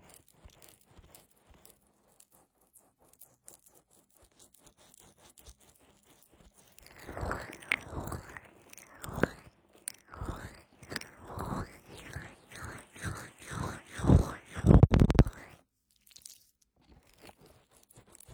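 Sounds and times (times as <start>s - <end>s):
wet sticky aloe gel squelching in a full-body massage: 6.8s - 15.5s.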